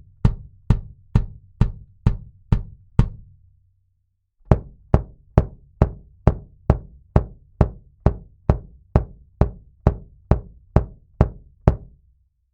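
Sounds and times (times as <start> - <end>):
bass drum microphone test: 0.0 - 3.4, 4.5 - 12.0.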